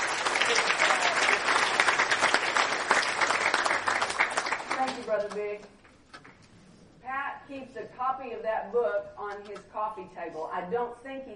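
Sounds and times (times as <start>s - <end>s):
audience applause: 0.0s - 5.2s
speech: 5.2s - 5.8s, 7.1s - 11.3s.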